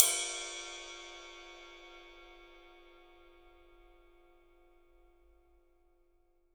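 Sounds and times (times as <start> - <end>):
ride cymbal: 0.0 - 3.5.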